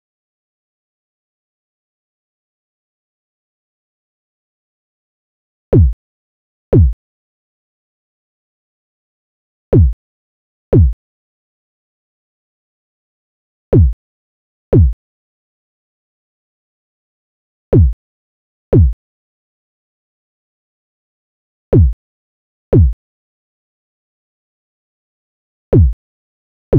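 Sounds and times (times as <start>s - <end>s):
kick drum: 5.8s - 6.0s, 6.7s - 7.0s, 9.8s - 10.0s, 10.7s - 11.0s, 13.8s - 14.0s, 14.7s - 15.0s, 17.8s - 18.0s, 18.7s - 19.0s, 21.8s - 22.0s, 22.7s - 23.0s, 25.8s - 26.0s.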